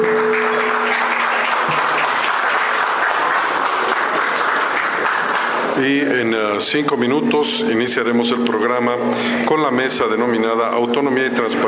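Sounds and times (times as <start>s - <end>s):
applause at ceremony: 0.0s - 6.8s
speech: 5.8s - 11.6s.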